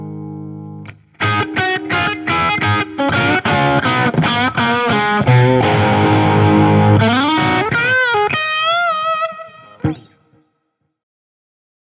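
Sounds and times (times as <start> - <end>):
dynamic blues noodling: 0.8 - 10.2.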